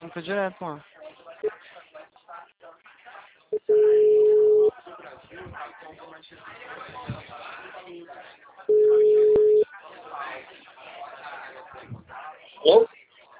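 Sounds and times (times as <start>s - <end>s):
people talking: 3.1s - 13.3s
phone line busy tone beeps after a dropped call: 3.6s - 4.7s, 8.7s - 9.6s.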